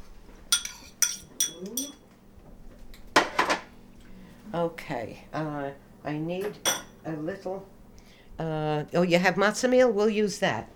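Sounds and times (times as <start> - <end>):
utensil striking a bowl while whipping eggs: 0.5 - 2.0, 6.6 - 7.0
speech: 4.6 - 7.8, 8.4 - 10.7.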